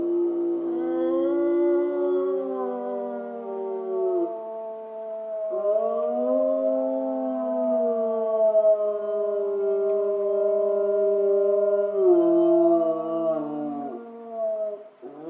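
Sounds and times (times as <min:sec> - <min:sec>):
gray wolves howling in a wavering chorus in Schorfheide, Germany: 0:00.0 - 0:15.2.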